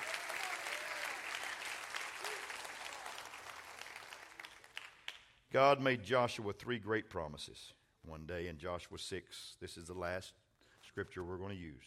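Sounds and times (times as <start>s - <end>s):
audience applause: 0.0s - 5.1s
speech: 5.5s - 11.8s.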